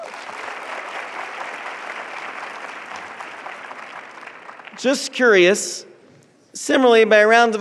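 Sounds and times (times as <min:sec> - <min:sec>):
crowd applauding: 0:00.0 - 0:05.4
speech: 0:04.8 - 0:05.9, 0:06.6 - 0:07.6.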